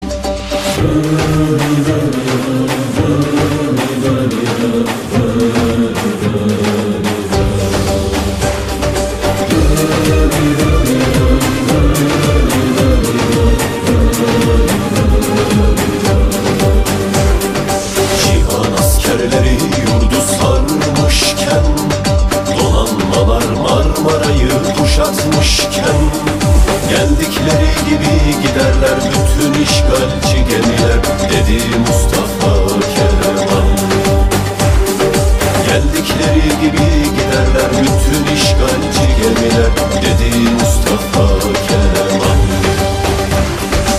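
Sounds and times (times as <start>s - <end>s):
dombra: 0.0s - 43.9s.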